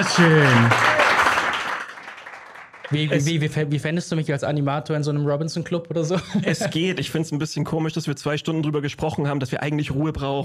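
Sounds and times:
speech: 0:00.0 - 0:00.9, 0:02.9 - 0:10.4
audience clapping: 0:00.0 - 0:03.4
laughter: 0:06.1 - 0:07.1.

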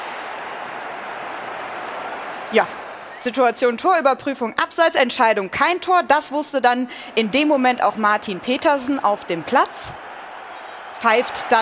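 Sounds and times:
large stadium crowd of football fans cheering: 0:00.0 - 0:11.6
speech: 0:02.5 - 0:10.0, 0:11.0 - 0:11.6.

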